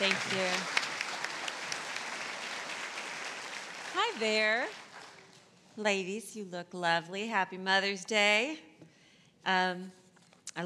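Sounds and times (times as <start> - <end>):
church congregation in Houston applauding to welcome a speaker: 0.0 - 5.5
speech: 4.2 - 4.8, 5.8 - 8.7, 9.4 - 10.0.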